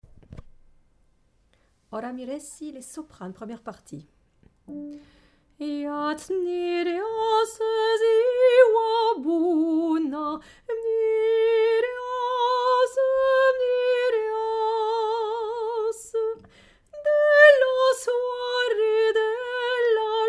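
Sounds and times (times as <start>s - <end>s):
soprano singing: 5.6s - 20.2s.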